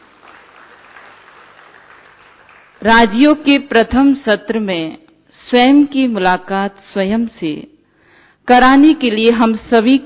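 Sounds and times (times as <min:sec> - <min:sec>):
audience applauding at a Rajyoga gathering on the Gyan Sarovar campus: 0:00.0 - 0:02.9
speech: 0:02.8 - 0:07.7, 0:08.5 - 0:10.0.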